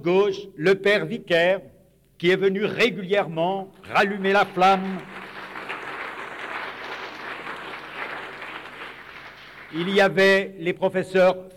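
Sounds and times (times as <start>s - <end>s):
speech: 0.0s - 5.2s, 9.7s - 11.5s
audience applause: 3.9s - 10.0s.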